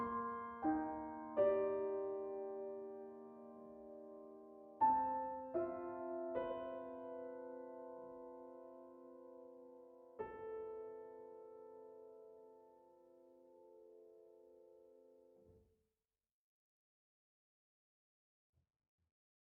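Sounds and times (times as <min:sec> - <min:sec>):
contemporary piano piece: 0:00.0 - 0:15.4.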